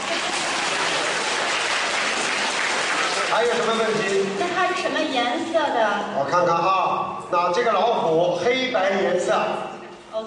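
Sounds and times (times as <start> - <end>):
crowd applause: 0.0 - 4.6
speech: 3.4 - 10.2.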